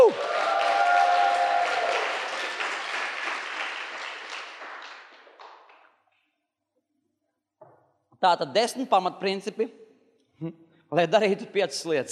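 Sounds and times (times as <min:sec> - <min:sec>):
audience cheering: 0:00.0 - 0:02.7
audience applause: 0:00.0 - 0:05.9
speech: 0:08.2 - 0:09.8, 0:10.4 - 0:12.1.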